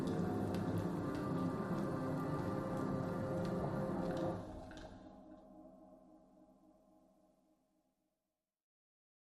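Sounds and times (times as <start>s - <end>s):
drones: 0.0s - 7.1s.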